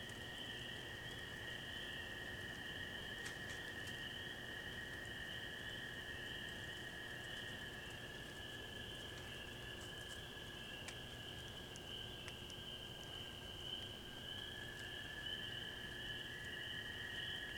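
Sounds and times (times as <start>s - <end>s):
night forest ambience in Wisconsin: 0.0s - 17.5s.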